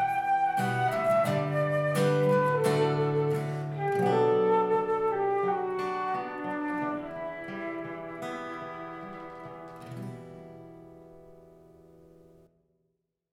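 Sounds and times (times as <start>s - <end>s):
flute in the Llanthony Valley: 0.0s - 10.3s
guitar in the Llanthony Valley: 0.0s - 12.6s.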